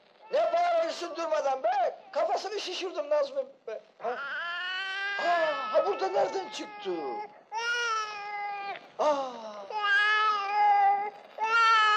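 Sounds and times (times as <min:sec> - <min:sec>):
speech: 0:01.0 - 0:04.4, 0:05.2 - 0:07.4, 0:09.0 - 0:09.5
baby crying: 0:04.0 - 0:11.9.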